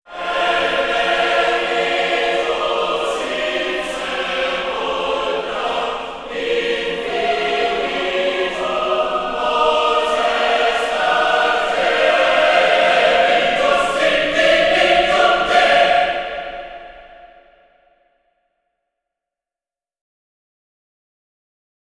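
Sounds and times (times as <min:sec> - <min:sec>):
choir singing: 0:00.0 - 0:17.8.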